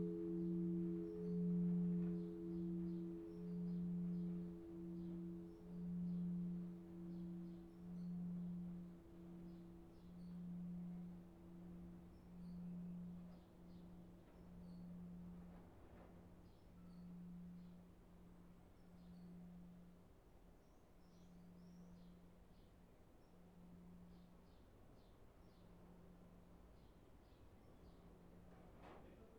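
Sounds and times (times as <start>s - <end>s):
church bells ringing in Northeim: 0.0s - 15.5s.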